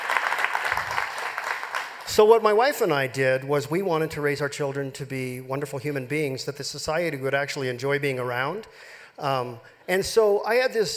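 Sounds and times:
audience applause: 0:00.0 - 0:02.5
speech: 0:02.1 - 0:10.9.

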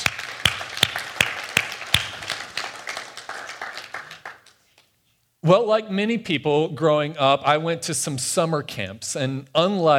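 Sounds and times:
round of applause: 0:00.0 - 0:04.6
speech: 0:05.4 - 0:09.9.

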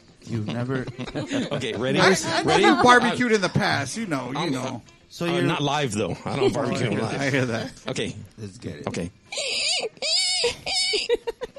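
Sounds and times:
laughter: 0:00.3 - 0:03.6, 0:06.1 - 0:07.8, 0:10.4 - 0:11.5
speech: 0:00.3 - 0:11.2
person imitating a pig squeal: 0:09.3 - 0:11.2.

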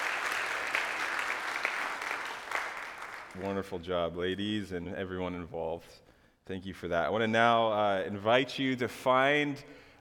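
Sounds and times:
audience hand clapping: 0:00.0 - 0:03.5
speech: 0:03.4 - 0:09.8.

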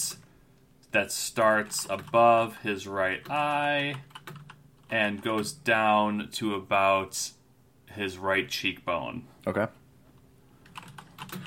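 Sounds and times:
speech: 0:00.9 - 0:04.2, 0:04.9 - 0:09.8
typing on a computer keyboard: 0:01.6 - 0:02.2, 0:03.2 - 0:05.5, 0:10.6 - 0:11.4.

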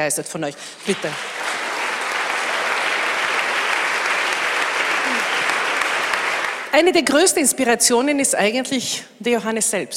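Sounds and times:
speech: 0:00.0 - 0:01.5, 0:06.7 - 0:09.9
audience applause: 0:00.8 - 0:06.8.

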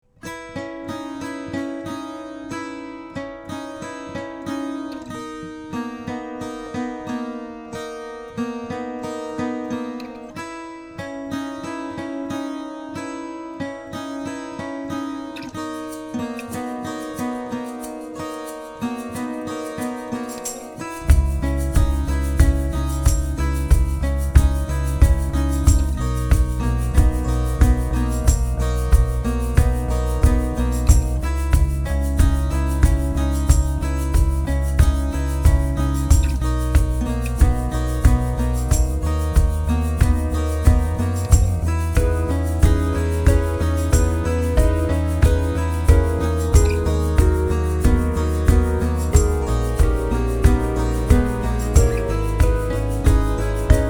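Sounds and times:
dissonant picking: 0:20.2 - 0:53.8.

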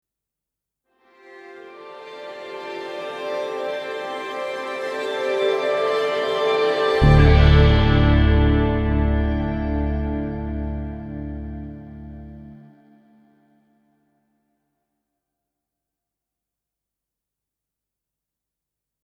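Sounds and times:
musical stinger: 0:02.2 - 0:13.0.

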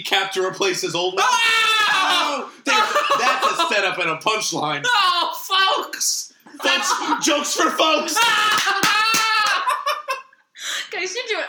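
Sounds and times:
speech: 0:00.0 - 0:09.0
laughter: 0:02.0 - 0:04.0, 0:06.5 - 0:10.3
clapping: 0:08.2 - 0:09.7.

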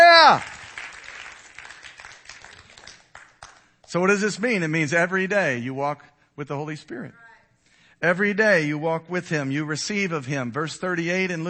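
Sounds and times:
audience clapping hands: 0:00.0 - 0:04.0
speech: 0:00.3 - 0:00.5, 0:03.9 - 0:07.2, 0:08.0 - 0:11.4.

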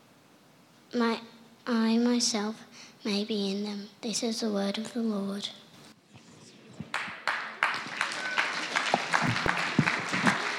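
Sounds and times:
speech: 0:00.9 - 0:05.6
audience applause: 0:06.9 - 0:10.5.

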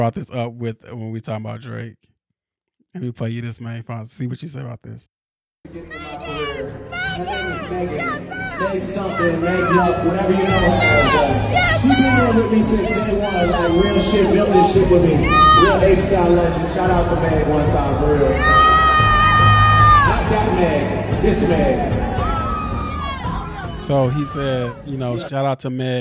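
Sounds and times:
speech: 0:00.0 - 0:02.1, 0:02.9 - 0:18.7, 0:20.3 - 0:22.1, 0:23.9 - 0:25.9
concert crowd cheering wildly: 0:05.7 - 0:25.1.

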